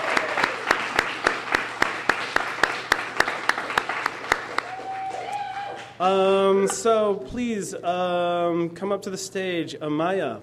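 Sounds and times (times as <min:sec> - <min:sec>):
audience applause: 0:00.0 - 0:06.0
speech: 0:06.0 - 0:10.4.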